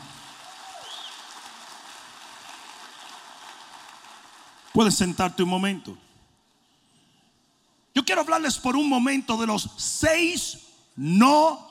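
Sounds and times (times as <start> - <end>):
audience applause: 0.0 - 4.9
speech: 4.7 - 6.0, 8.2 - 11.6.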